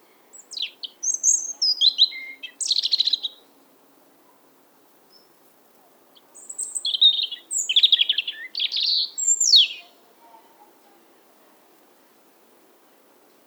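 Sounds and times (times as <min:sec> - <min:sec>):
European robin Erithacus rubecula singing: 0:00.0 - 0:03.6, 0:06.1 - 0:10.7.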